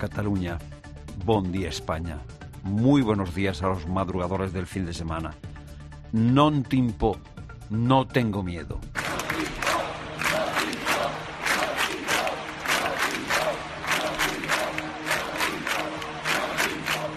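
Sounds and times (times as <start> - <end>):
speech: 0.0 - 5.5, 6.1 - 9.5
thousands of people chanting in a square: 9.0 - 17.1.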